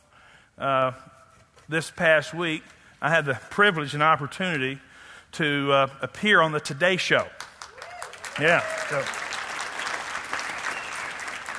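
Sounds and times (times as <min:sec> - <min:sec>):
speech: 0:00.6 - 0:01.1, 0:01.7 - 0:07.4, 0:08.4 - 0:09.2
audience applause for a speaker: 0:07.6 - 0:11.5.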